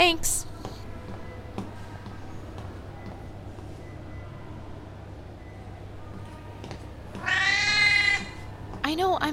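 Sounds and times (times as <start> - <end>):
cat meowing: 7.2 - 8.4.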